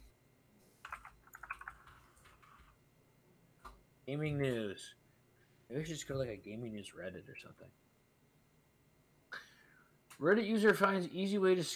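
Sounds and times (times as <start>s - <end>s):
soft typing on a computer keyboard: 0.8s - 2.8s
speech: 4.1s - 5.0s, 5.7s - 7.8s, 10.2s - 11.7s.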